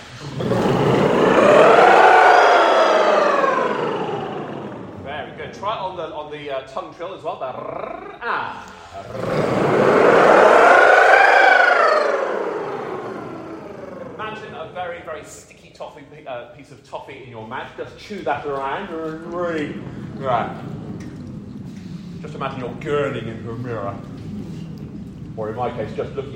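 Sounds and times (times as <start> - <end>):
voice imitating a wailing siren like a fire alarm: 0.4 - 5.1, 9.1 - 14.6
speech: 6.4 - 9.4, 16.6 - 20.8, 22.2 - 24.2, 25.4 - 26.3.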